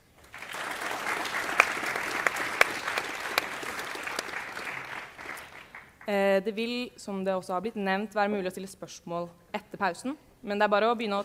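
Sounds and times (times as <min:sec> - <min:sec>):
audience applause: 0:00.2 - 0:06.1
speech: 0:06.1 - 0:11.2.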